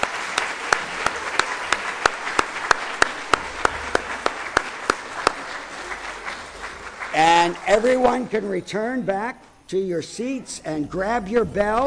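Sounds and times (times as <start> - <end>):
audience applause: 0.0 - 8.3
speech: 7.4 - 11.8.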